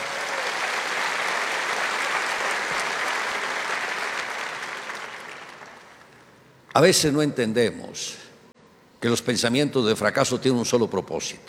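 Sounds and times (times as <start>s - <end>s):
audience applauding: 0.0s - 6.2s
speech: 6.8s - 8.2s, 9.0s - 11.4s.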